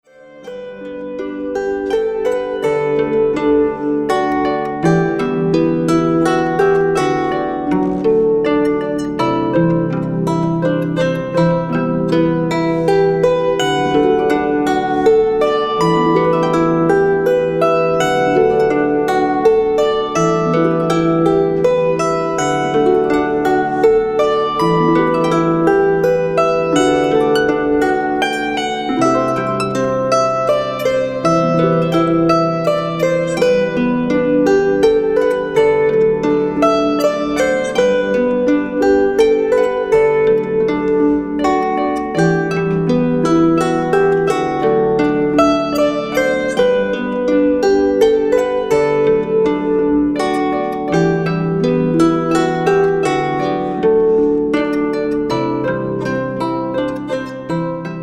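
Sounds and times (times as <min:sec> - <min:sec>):
improvised music: 0:00.0 - 0:58.0.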